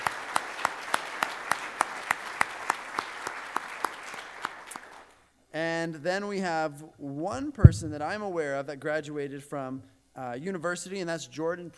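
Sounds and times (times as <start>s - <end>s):
audience applauding graduates: 0.0s - 5.1s
speech: 5.6s - 11.7s.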